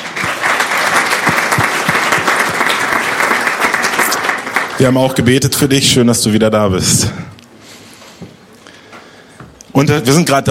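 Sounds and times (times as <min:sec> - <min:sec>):
audience applause: 0:00.0 - 0:05.2
speech: 0:04.8 - 0:07.3, 0:09.8 - 0:10.5.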